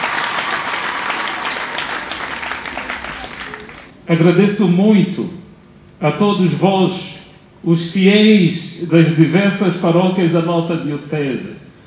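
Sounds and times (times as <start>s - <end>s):
audience applause: 0.0s - 4.0s
speech: 4.1s - 5.4s, 6.0s - 11.7s.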